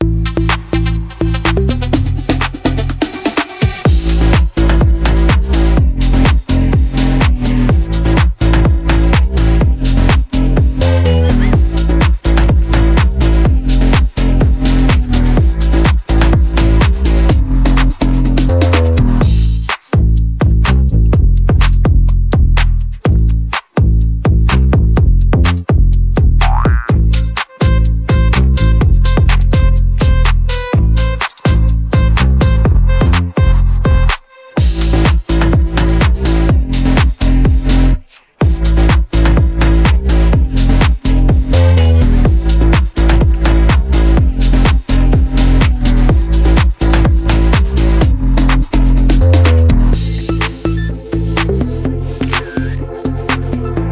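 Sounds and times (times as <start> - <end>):
instrumental music: 0.0 - 53.9.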